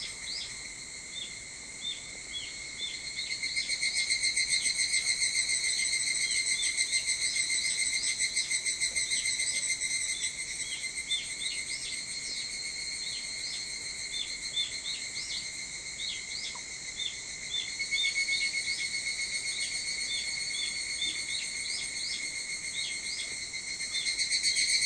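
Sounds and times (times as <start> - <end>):
evening cicada song: 0.0 - 24.8.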